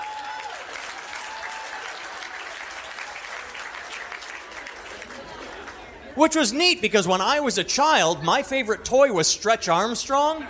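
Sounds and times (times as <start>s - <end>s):
audience applause for the women: 0.0s - 5.9s
speech: 6.2s - 10.4s.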